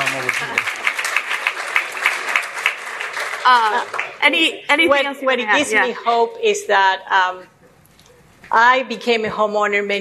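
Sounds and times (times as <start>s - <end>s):
audience applause: 0.0s - 4.2s
speech: 3.4s - 7.5s, 8.5s - 10.0s.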